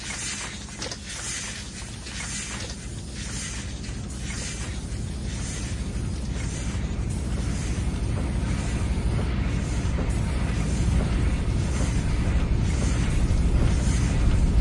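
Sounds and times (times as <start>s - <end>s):
industrial sounds: 0.0s - 14.5s.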